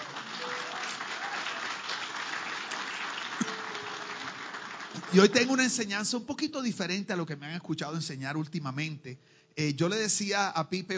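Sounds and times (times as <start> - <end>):
audience applause: 0.0 - 5.9
speech: 5.1 - 10.9.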